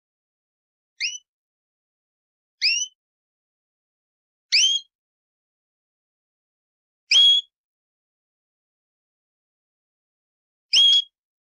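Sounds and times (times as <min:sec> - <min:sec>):
canary singing: 0:01.0 - 0:01.3, 0:02.6 - 0:03.0, 0:04.5 - 0:04.9.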